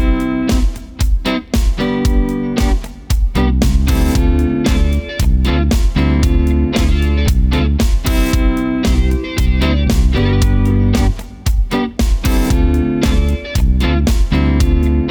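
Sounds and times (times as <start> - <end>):
blues music tuned to 432 Hz: 0.0 - 15.0.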